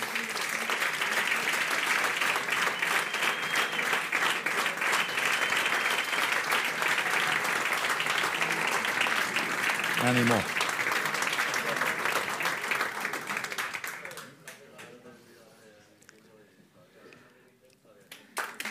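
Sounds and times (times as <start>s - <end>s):
audience applause: 0.0s - 14.4s
speech: 10.1s - 10.6s.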